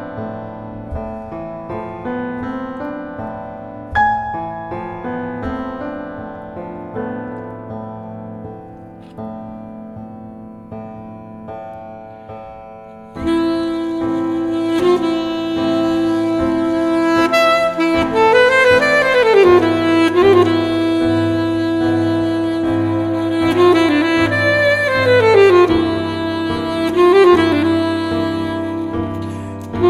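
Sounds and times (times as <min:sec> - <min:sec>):
tango music: 0:00.0 - 0:29.8
jazz music: 0:13.0 - 0:29.8.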